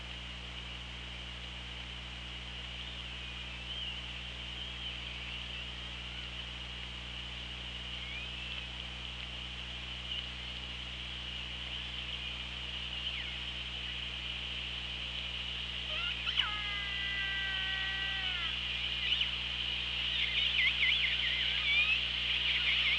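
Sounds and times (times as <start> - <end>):
constant hiss and low hum: 0.0 - 22.9
killer whale call: 16.0 - 18.6.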